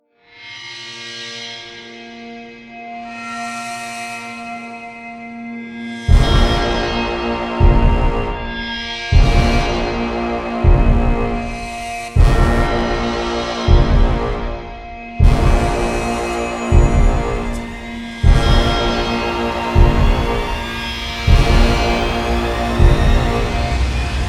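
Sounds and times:
battle intro music: 0:06.0 - 0:24.2.

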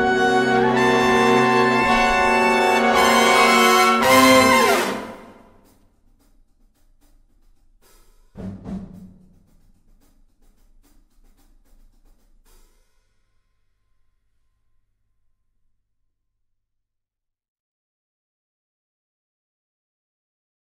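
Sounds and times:
horns: 0:00.0 - 0:05.6.

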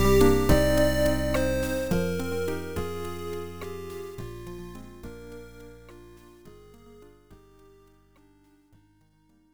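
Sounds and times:
tension music: 0:00.0 - 0:06.4.

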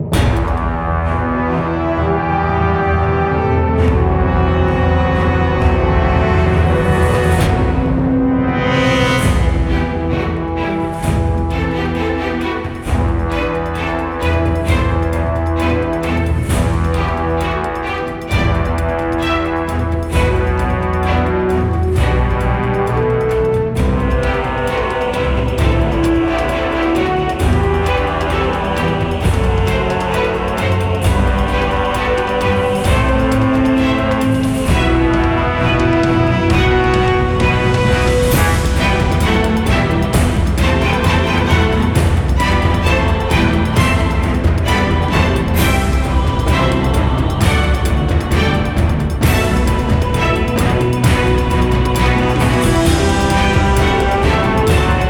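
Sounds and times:
orchestra: 0:00.0 - 0:55.0.

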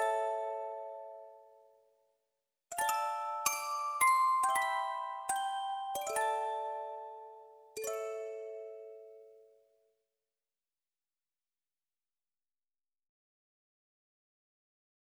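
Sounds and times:
music box melody: 0:02.8 - 0:09.3.

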